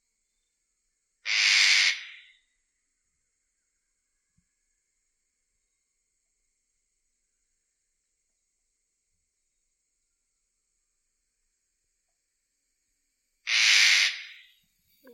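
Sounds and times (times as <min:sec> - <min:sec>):
eclectus parrot calling: 0:13.5 - 0:14.5.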